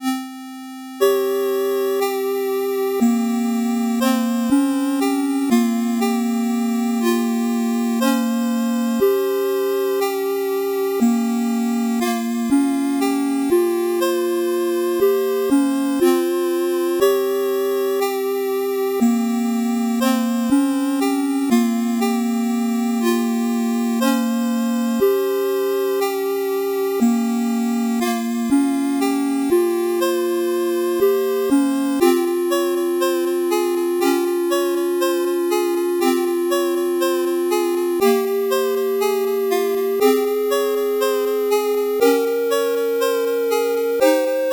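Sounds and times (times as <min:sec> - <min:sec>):
slow 8-bit background music: 0:00.0 - 0:44.5.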